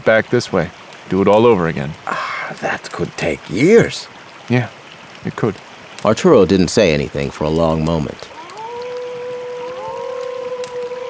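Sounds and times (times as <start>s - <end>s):
speech: 0.0s - 2.1s, 2.9s - 8.3s
coyotes howling: 7.1s - 11.0s.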